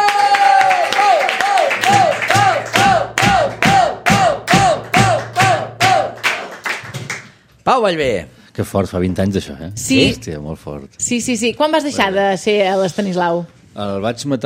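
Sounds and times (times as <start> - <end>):
audience applause: 0.0 - 3.7, 4.5 - 7.4
speech: 7.7 - 14.4.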